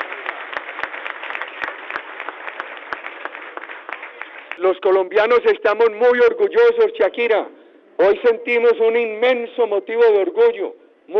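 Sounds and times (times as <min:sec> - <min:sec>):
crowd applauding: 0:00.0 - 0:04.8
speech: 0:04.6 - 0:11.1.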